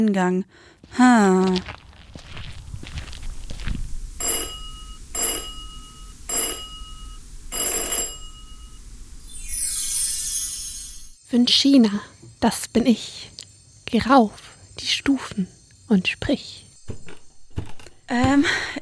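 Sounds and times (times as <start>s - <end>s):
speech: 0.0s - 1.8s, 11.3s - 13.3s, 13.9s - 17.0s, 18.1s - 18.8s
doorbell ringing: 4.2s - 9.6s.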